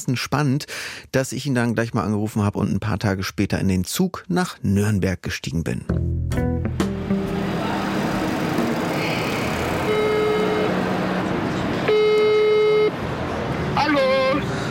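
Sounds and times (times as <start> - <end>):
speech: 0.0 - 6.4
traffic noise on a busy street outside a train station: 7.0 - 14.7
horn blasts: 7.5 - 13.0, 13.8 - 14.6.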